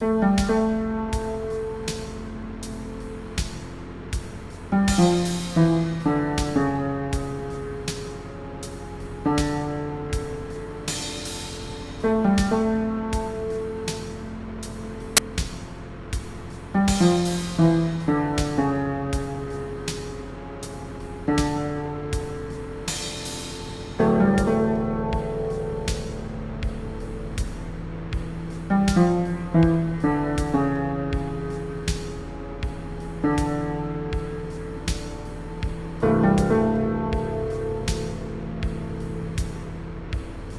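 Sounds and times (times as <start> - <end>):
instrumental music: 0.0 - 40.5.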